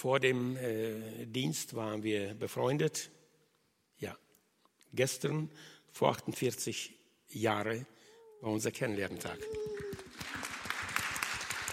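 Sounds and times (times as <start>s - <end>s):
speech: 0.0s - 3.2s, 4.0s - 4.2s, 4.9s - 9.9s
audience applause: 9.4s - 11.7s.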